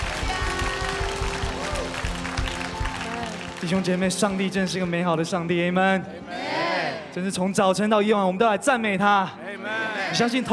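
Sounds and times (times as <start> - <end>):
audience applause: 0.0 - 4.8
speech: 3.6 - 9.4, 10.1 - 10.5.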